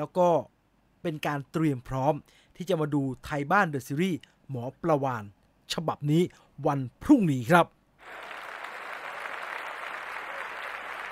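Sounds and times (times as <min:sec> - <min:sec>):
speech: 0:00.0 - 0:08.2
applause: 0:08.0 - 0:11.1.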